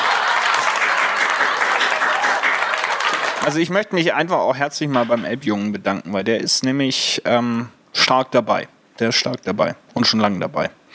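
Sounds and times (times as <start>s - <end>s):
small group clapping: 0.0s - 3.6s
speech: 3.4s - 10.9s.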